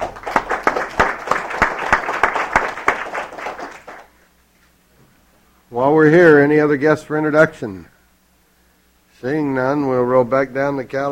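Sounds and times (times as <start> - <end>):
audience applause welcoming a guest writer during a legislative floor session: 0.0 - 4.2
speech: 5.8 - 7.9, 9.2 - 11.0.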